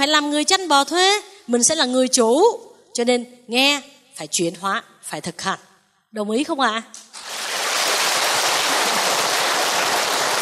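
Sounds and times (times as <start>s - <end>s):
speech: 0.0s - 7.0s
audience applause: 7.2s - 10.4s.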